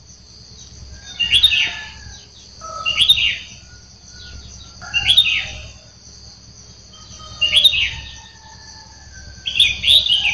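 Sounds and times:
sooty-headed bulbul song: 0.6s - 10.3s.

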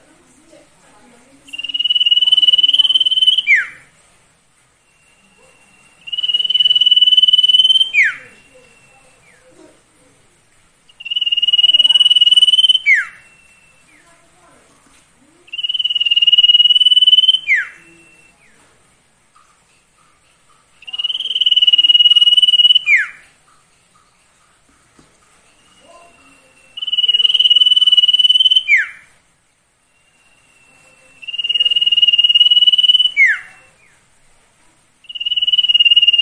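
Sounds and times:
scattered faint chirps: 0.0s - 36.2s
Sirtu singing pulsed trills: 1.5s - 3.9s, 4.8s - 9.6s, 10.9s - 14.3s, 15.4s - 18.6s, 20.6s - 23.4s, 25.4s - 29.2s, 29.8s - 34.0s, 35.0s - 36.2s.

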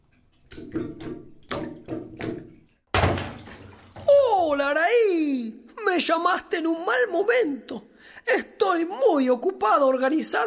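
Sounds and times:
rushing, swishing water transition effect: 0.0s - 4.4s
speech: 6.0s - 10.4s.

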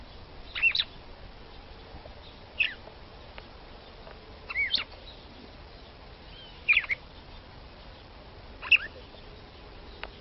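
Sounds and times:
red-cowled cardinal female singing short sweeping whistles: 0.5s - 1.0s, 6.3s - 7.0s, 8.6s - 9.0s.

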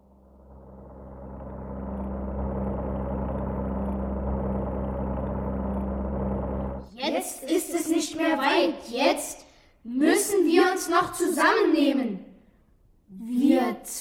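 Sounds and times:
aircraft engine droning in a radio play: 0.0s - 6.9s
speech: 7.1s - 12.2s, 13.3s - 13.9s.

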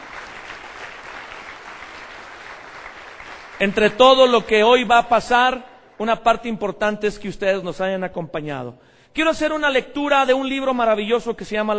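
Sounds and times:
audience applause welcoming first-time guests at a gathering: 0.0s - 3.9s
speech: 3.6s - 11.7s.

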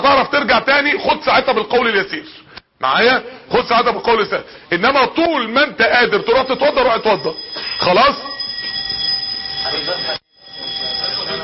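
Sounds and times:
speech: 0.0s - 8.3s, 9.6s - 10.2s
fire alarm steady high electronic tone: 5.6s - 11.4s.

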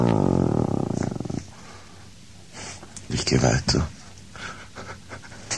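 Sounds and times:
low, throaty animal growl: 0.0s - 1.5s
speech: 3.3s - 4.0s.

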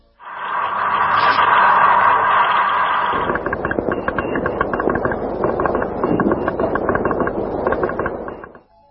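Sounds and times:
noisy radio static: 0.1s - 8.6s
Morse code SOS signal: 3.1s - 8.6s.

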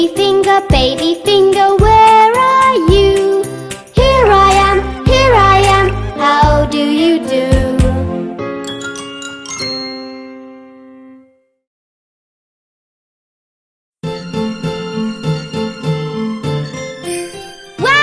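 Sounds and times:
speech: 0.0s - 2.1s
musical backing: 0.0s - 11.4s, 14.0s - 18.0s
jingle bells ringing: 8.6s - 10.6s, 16.8s - 18.0s.

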